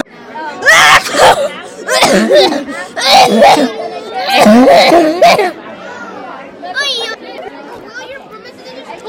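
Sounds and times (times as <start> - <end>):
hard coughing: 0.8 - 5.6.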